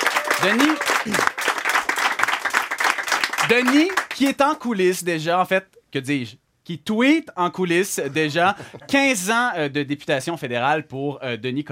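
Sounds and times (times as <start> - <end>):
audience applause greeting a guest at an evening show: 0.0 - 4.6
speech: 0.4 - 1.4, 3.5 - 11.7.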